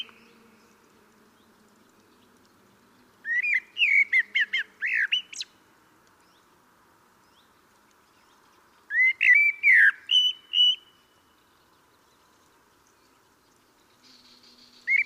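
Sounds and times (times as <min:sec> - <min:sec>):
Common blackbird singing: 0:03.2 - 0:05.5, 0:08.1 - 0:15.0.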